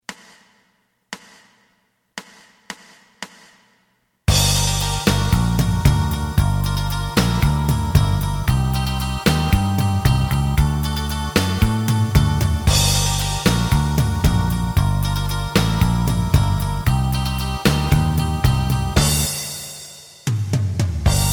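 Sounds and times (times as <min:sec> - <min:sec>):
lead melody: 0:04.3 - 0:19.6, 0:21.1 - 0:21.3.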